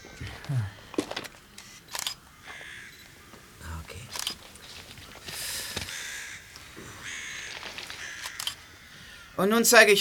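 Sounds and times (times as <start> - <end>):
camera shutter clicks photographing a spot where bloodstains were scrubbed away: 1.6 - 3.1, 4.1 - 4.5, 7.7 - 8.6
speech: 9.4 - 10.0.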